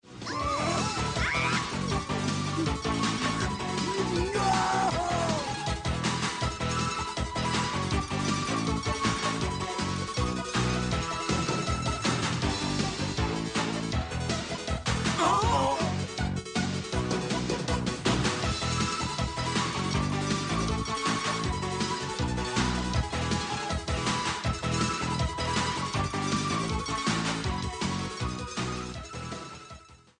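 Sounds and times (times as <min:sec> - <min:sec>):
instrumental music: 0:00.2 - 0:30.0.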